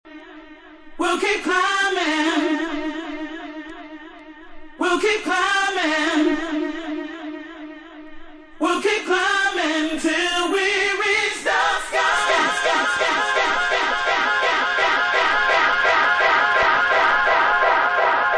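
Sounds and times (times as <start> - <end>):
a cappella singing: 0.1 - 8.0, 8.6 - 17.7.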